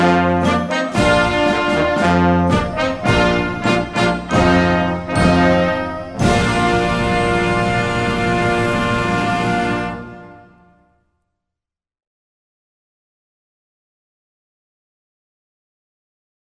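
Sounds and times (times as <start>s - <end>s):
fanfare in B flat: 0.0s - 10.9s.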